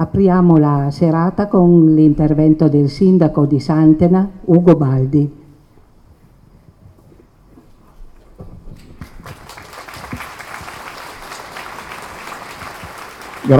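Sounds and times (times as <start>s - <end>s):
speech: 0.0s - 5.4s
audience applause: 8.8s - 13.5s.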